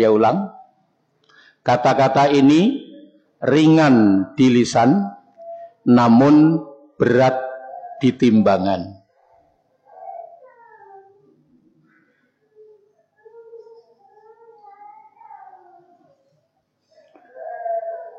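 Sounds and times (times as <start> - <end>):
speech: 0.0 - 0.6, 1.6 - 2.8, 3.4 - 5.2, 5.8 - 9.0
small child crying during a religious lecture: 9.8 - 11.4, 12.5 - 16.2, 17.1 - 18.1.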